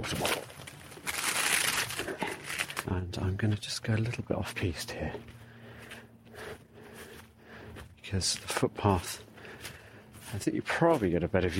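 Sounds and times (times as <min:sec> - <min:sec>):
speech: 0:00.0 - 0:00.4, 0:02.8 - 0:05.3, 0:08.1 - 0:09.3, 0:10.3 - 0:11.5
crisp packet being picked up, crinkling: 0:00.0 - 0:02.9.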